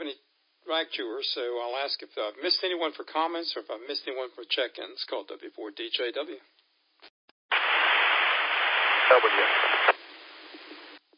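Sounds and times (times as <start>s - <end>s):
speech: 0.7s - 6.5s, 9.1s - 9.7s
radio transceiver key-up static from WIRES node: 7.5s - 11.0s.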